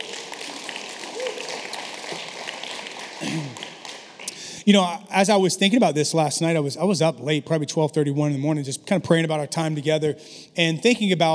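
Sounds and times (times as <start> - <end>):
crowd clapping: 0.0 - 4.6
speech: 3.2 - 3.6, 4.7 - 11.3.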